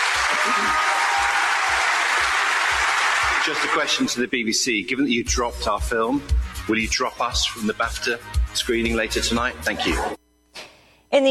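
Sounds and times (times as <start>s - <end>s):
large audience applause: 0.0s - 4.2s
speech: 0.4s - 1.0s, 3.4s - 10.2s, 11.1s - 11.3s.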